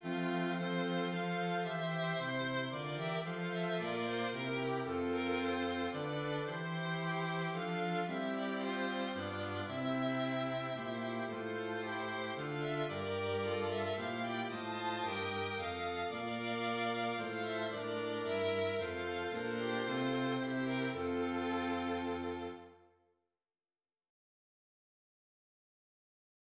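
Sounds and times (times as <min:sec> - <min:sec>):
strings: 0:00.0 - 0:22.8.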